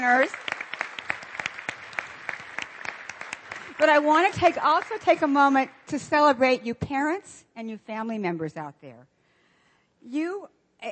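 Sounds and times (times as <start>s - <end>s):
speech: 0.0s - 0.5s, 3.8s - 9.1s, 10.0s - 10.9s
audience applause: 0.0s - 5.2s.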